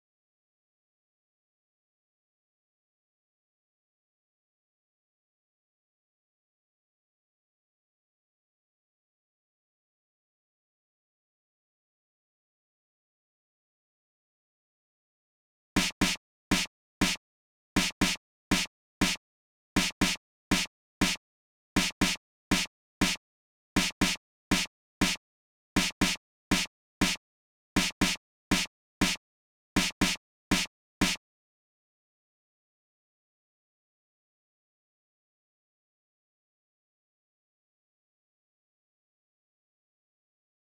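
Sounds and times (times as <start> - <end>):
snare drum: 15.8 - 17.2, 17.8 - 19.2, 19.8 - 21.2, 21.8 - 23.2, 23.8 - 25.2, 25.8 - 27.2, 27.8 - 29.2, 29.8 - 31.2.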